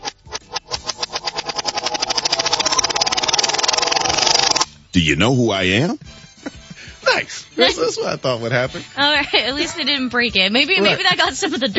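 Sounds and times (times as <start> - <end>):
prize wheel spun backwards: 0.0 - 4.7
speech: 5.0 - 6.6, 7.2 - 11.7
laughter: 6.4 - 11.7.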